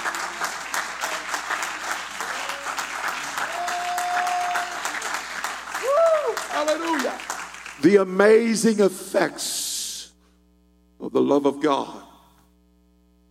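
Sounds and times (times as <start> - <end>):
audience clapping hands: 0.0 - 8.2
speech: 6.6 - 9.6, 11.2 - 12.0.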